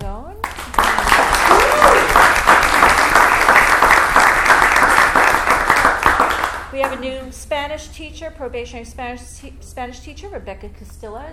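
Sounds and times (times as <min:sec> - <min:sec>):
crowd clapping: 0:00.4 - 0:07.1
speech: 0:06.8 - 0:11.3.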